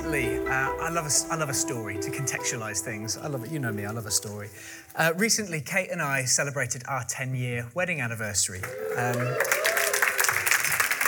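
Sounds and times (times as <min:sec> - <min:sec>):
speech: 0:00.1 - 0:09.8
audience applause: 0:08.6 - 0:11.0.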